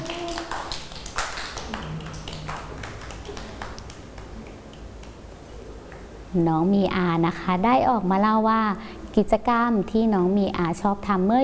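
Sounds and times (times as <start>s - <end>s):
children clapping: 0.0s - 5.2s
speech: 6.3s - 11.4s.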